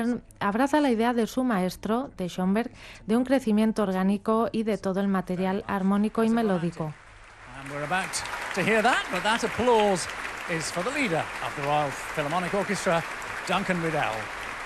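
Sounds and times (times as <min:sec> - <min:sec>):
speech: 0:00.0 - 0:07.0, 0:07.6 - 0:14.4
concert audience applause: 0:06.7 - 0:14.6.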